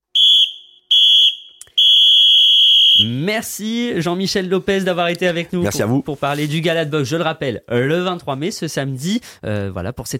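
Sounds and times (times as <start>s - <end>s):
shrill high-pitched referee whistle blasts: 0.1s - 3.2s
speech: 3.0s - 10.1s.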